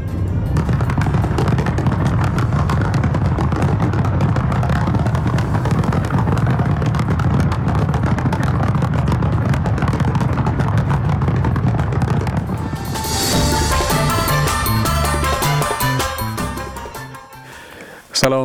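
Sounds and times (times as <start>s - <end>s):
sustained tonal music with a steady melodic line: 0.0s - 2.7s, 12.5s - 18.0s
fireworks at Olympic opening ceremony: 0.0s - 14.9s.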